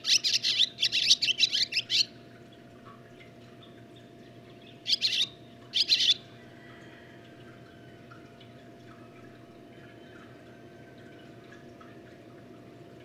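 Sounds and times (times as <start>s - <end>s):
barn swallow twittering song: 0.0s - 2.1s, 4.7s - 6.2s.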